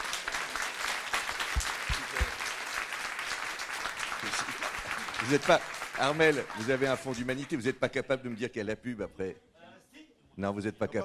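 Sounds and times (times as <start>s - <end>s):
audience applause: 0.0s - 7.6s
speech: 4.3s - 4.6s, 5.2s - 9.5s, 10.4s - 11.0s.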